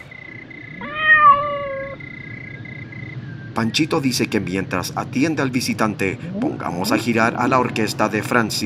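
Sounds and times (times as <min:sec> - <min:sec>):
cat meowing: 0:00.8 - 0:02.0
speech: 0:03.6 - 0:08.6.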